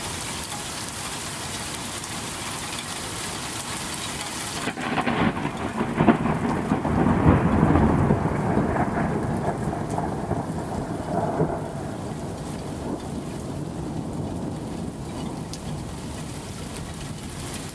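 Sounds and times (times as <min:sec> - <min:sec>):
thunderstorm: 0:04.6 - 0:17.7.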